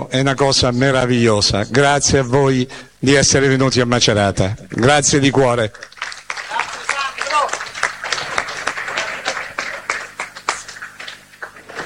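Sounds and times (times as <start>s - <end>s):
speech: 0.1s - 5.9s
crowd of faithful applauding in the stadium: 5.6s - 11.8s.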